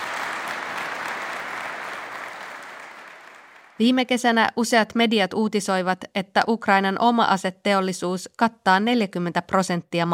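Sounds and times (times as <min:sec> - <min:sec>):
audience applause after a speech at a Ukrainian arms factory opening: 0:00.0 - 0:03.8
speech: 0:03.8 - 0:10.1.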